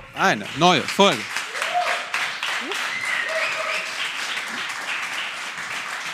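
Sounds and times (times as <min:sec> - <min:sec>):
speech: 0:00.2 - 0:01.3
audience applause: 0:00.2 - 0:06.1
faint voices and brief whoops: 0:01.5 - 0:04.0.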